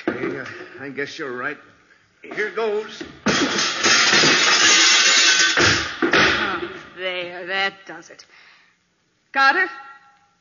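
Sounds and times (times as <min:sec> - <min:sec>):
speech: 0:00.8 - 0:03.8, 0:07.0 - 0:08.5, 0:09.3 - 0:09.8
chair smashing through glass door panel: 0:03.3 - 0:06.6.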